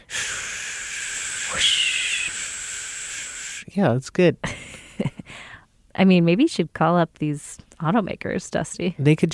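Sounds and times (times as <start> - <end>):
voice imitating the whoosh of wind past a moving car: 0.0 - 3.6
speech: 1.5 - 1.8, 3.8 - 4.6, 6.0 - 9.3.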